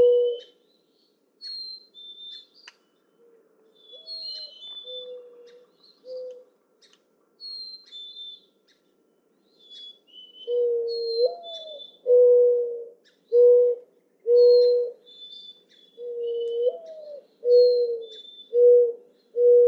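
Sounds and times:
mourning dove cooing: 0.0s - 0.6s, 3.2s - 6.5s, 10.4s - 15.1s, 16.0s - 19.6s.

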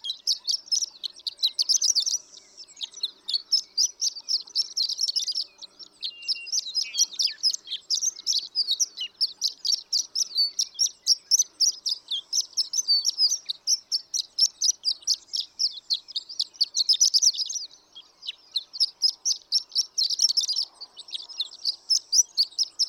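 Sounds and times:
horned lark twittering song: 0.0s - 22.8s.

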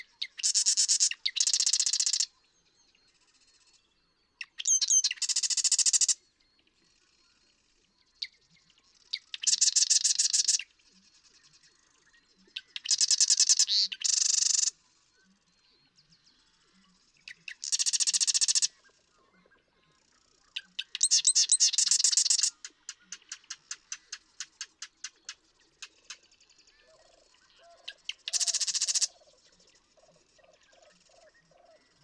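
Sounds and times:
marsh wren rattling song: 0.2s - 2.3s, 4.5s - 6.2s, 9.1s - 10.6s, 12.6s - 14.7s, 17.4s - 18.7s, 20.6s - 26.2s, 27.9s - 29.2s.

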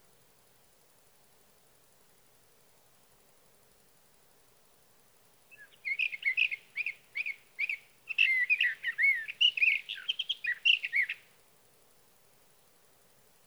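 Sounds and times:
sage thrasher singing warble: 5.5s - 11.2s.

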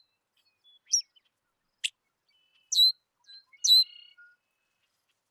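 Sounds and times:
Red-winged Blackbird calling: 0.6s - 4.8s.

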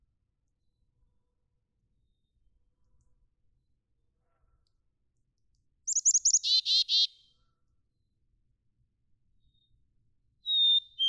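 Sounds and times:
black-capped chickadee calling: 5.9s - 7.1s, 10.5s - 11.0s.

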